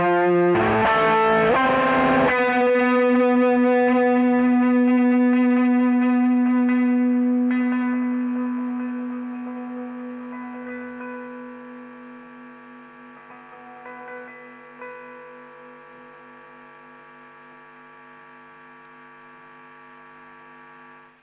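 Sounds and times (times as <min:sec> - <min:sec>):
electric guitar: 0:00.0 - 0:16.8.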